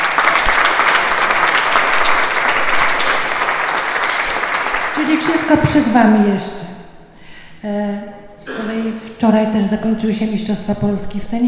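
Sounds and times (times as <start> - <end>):
crowd applause: 0.0 - 5.9
speech: 5.1 - 6.6, 8.9 - 11.4.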